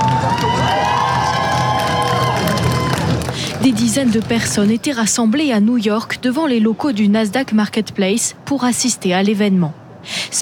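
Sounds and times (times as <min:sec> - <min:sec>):
clapping: 0:00.0 - 0:03.6
crowd cheering: 0:00.0 - 0:03.6
speech: 0:03.8 - 0:10.4.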